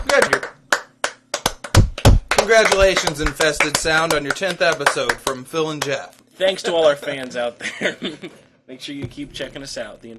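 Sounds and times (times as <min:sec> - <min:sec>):
applause: 0:00.0 - 0:06.0
speech: 0:02.5 - 0:10.1
laughter: 0:07.6 - 0:08.4.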